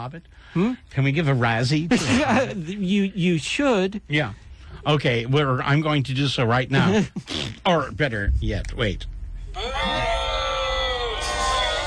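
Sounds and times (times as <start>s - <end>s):
speech: 0.0s - 10.0s
canned crowd-booing sound effect: 9.5s - 11.8s.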